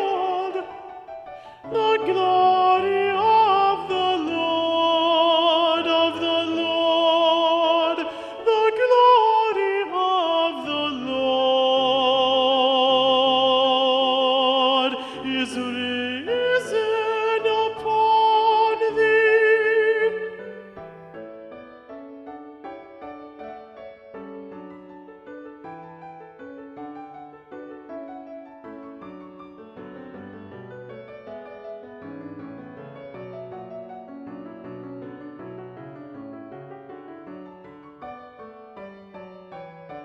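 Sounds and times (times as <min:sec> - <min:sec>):
alto voice: 0:00.0 - 0:21.0.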